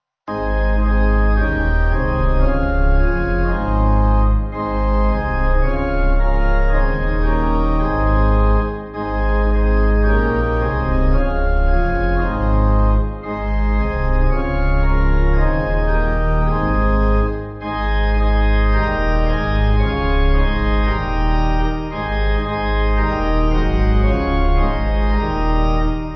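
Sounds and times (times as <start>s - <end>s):
pipe organ church music backing: 0.3s - 26.1s.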